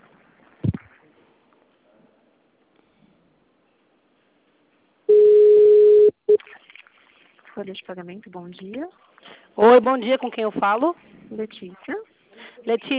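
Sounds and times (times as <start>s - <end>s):
short beep: 5.1s - 6.4s
telephone line tone while a call is transferred: 5.1s - 6.4s
speech: 7.6s - 12.9s.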